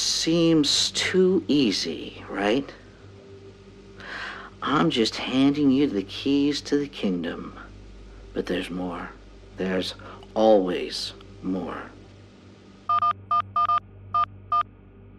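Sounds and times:
speech: 0:00.2 - 0:02.8, 0:04.6 - 0:07.6, 0:08.4 - 0:12.0
phone dialing beeps: 0:12.9 - 0:14.6.

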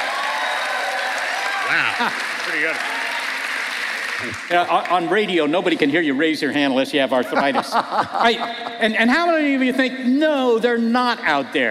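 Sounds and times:
crowd cheering and whooping: 0:00.0 - 0:04.4
crowd applause: 0:00.0 - 0:05.9
laughter: 0:01.7 - 0:02.4, 0:07.1 - 0:09.6
speech: 0:01.7 - 0:03.1, 0:04.2 - 0:11.6.

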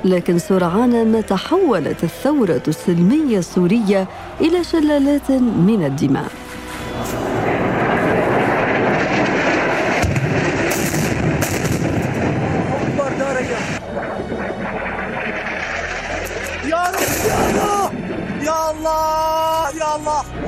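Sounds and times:
speech: 0:00.0 - 0:07.5
military warplanes: 0:00.0 - 0:20.4
gunfire: 0:08.6 - 0:17.9.

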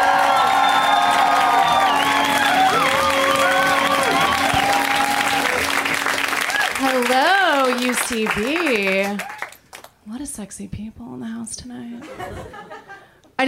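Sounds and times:
whoops and whistles: 0:00.0 - 0:05.5
audience applause and cheering at a UCB comedy show: 0:00.0 - 0:10.0
speech: 0:07.2 - 0:09.3, 0:10.1 - 0:12.7
laughter: 0:12.0 - 0:13.1.

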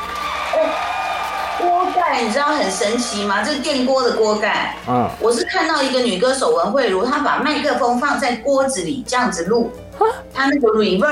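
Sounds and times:
audience applause and cheering: 0:00.0 - 0:05.1
speech: 0:02.1 - 0:11.1.

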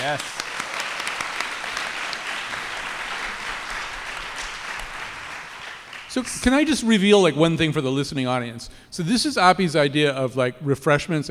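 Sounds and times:
speech: 0:00.0 - 0:00.4, 0:06.1 - 0:11.2
audience applauding: 0:00.0 - 0:06.9.

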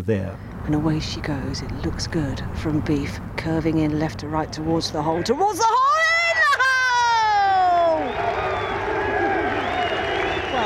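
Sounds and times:
speech: 0:00.0 - 0:06.0
golf gallery crowd cheering: 0:04.3 - 0:10.6.

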